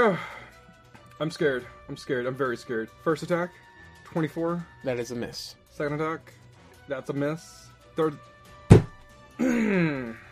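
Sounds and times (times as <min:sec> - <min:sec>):
speech: 0:00.0 - 0:00.3, 0:01.2 - 0:08.3, 0:09.4 - 0:10.2
hand slapping a table: 0:08.7 - 0:09.0.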